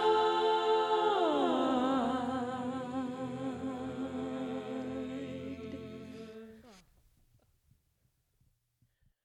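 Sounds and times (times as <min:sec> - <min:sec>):
soprano singing: 0:00.0 - 0:06.8.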